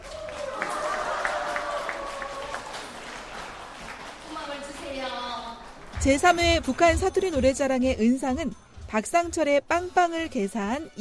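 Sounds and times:
audience applause: 0.0s - 5.0s
speech: 6.0s - 10.9s.

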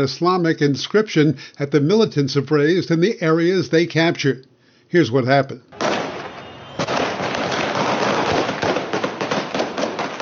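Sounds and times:
speech: 0.0s - 5.8s
gunfire, shots fired into the air: 5.8s - 10.1s.

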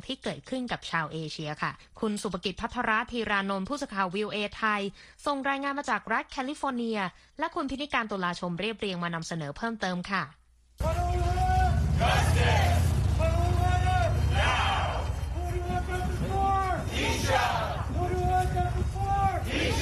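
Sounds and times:
speech: 0.0s - 11.0s
crowd shouting demands for justice at a street rally: 10.8s - 19.8s.

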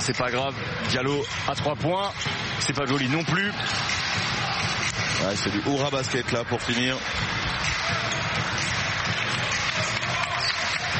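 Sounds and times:
speech: 0.0s - 4.6s, 5.2s - 7.3s
applause from the stands of the Kigali Arena: 6.6s - 10.9s.

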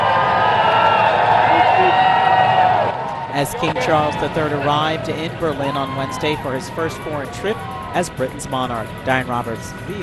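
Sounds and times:
crowd cheering: 0.0s - 8.2s
speech: 3.4s - 10.0s.

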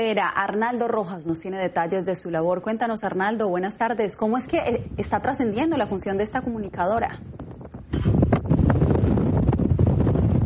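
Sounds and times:
speech: 0.0s - 8.2s
immense gust of wind in the desert at El Paso buffeting the microphone: 2.7s - 10.4s.

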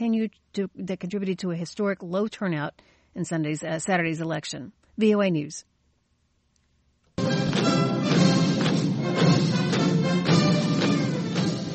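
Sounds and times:
speech: 0.0s - 5.7s
soldiers marching in lockstep at China's military parade: 7.4s - 11.7s.

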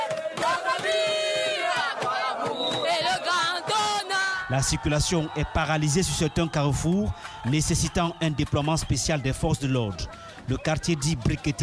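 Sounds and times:
street crowd singing in unison: 0.0s - 8.2s
crowd cheering: 0.0s - 11.6s
speech: 4.5s - 11.6s.

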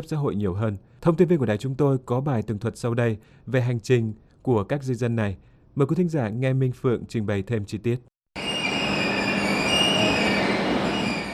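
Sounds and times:
speech: 0.0s - 8.1s
express train from Verona to Munich rumbling on rails at Brenner station: 8.4s - 11.3s
high thin squealing tones of express train at Brenner station: 8.4s - 11.3s.

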